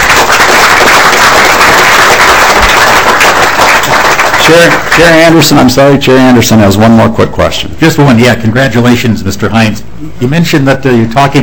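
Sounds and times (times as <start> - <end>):
crowd applause: 0.0 - 5.4
speech: 4.5 - 11.4.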